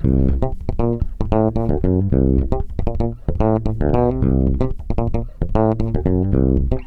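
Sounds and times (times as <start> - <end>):
bass groove in C: 0.0 - 6.8.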